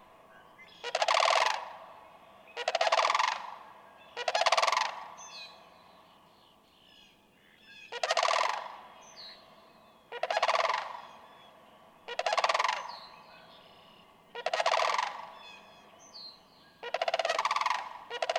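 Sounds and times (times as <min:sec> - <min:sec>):
sandhill crane rattling calls: 0:00.8 - 0:01.7, 0:02.6 - 0:03.6, 0:04.2 - 0:05.0, 0:07.9 - 0:08.7, 0:10.2 - 0:11.0, 0:12.1 - 0:13.1, 0:14.3 - 0:15.7, 0:16.8 - 0:18.3.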